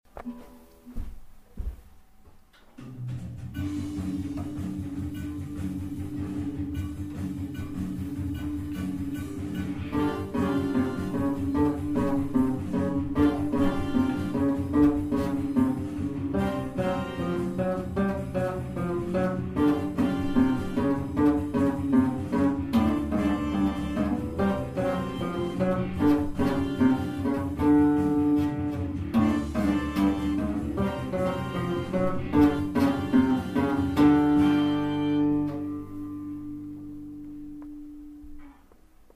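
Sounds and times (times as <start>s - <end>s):
bass riff: 2.8s - 38.4s.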